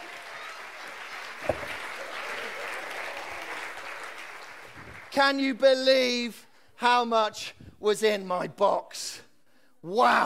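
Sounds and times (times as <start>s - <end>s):
audience applause: 0.0s - 5.2s
speech: 5.2s - 9.2s, 9.8s - 10.2s.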